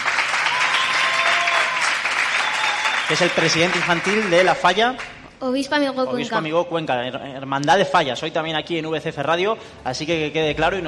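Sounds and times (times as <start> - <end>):
audience clapping for the child president of a Valencian falla: 0.0 - 5.3
speech: 3.1 - 10.8.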